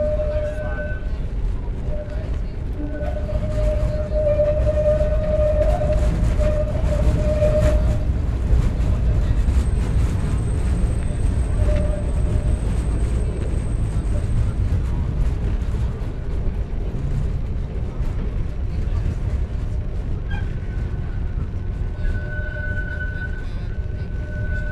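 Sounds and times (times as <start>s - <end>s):
tram in public transit in Budapest Hungary: 0.0s - 24.7s.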